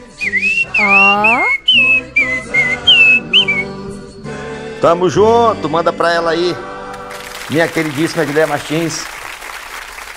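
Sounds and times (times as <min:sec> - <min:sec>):
birdlike whistled birthday tune: 0:00.0 - 0:03.9
speech: 0:00.8 - 0:01.4, 0:04.8 - 0:06.7, 0:07.5 - 0:09.1.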